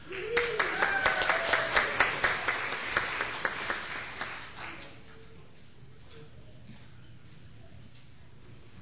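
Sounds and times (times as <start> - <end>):
audience applause: 0.0 - 4.9.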